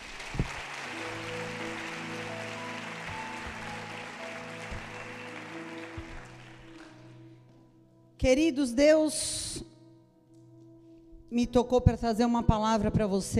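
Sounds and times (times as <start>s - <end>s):
audience applauding: 0.0s - 7.2s
speech: 8.2s - 9.5s, 11.4s - 13.3s.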